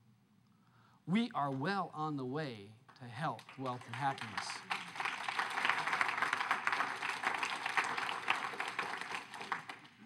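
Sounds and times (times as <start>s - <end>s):
speech: 1.1s - 4.7s
audience clapping: 2.9s - 10.0s.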